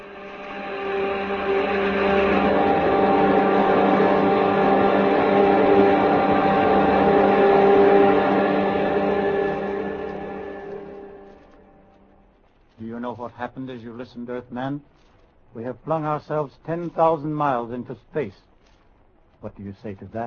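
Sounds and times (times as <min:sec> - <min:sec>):
spaceship jet dynamos humming: 0:00.0 - 0:13.1
speech: 0:13.7 - 0:15.0, 0:15.6 - 0:18.5, 0:19.4 - 0:20.2.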